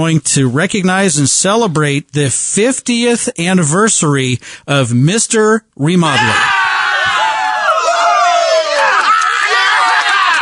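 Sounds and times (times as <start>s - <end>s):
speech: 0.0s - 6.7s
crowd cheering and whooping: 6.1s - 10.4s.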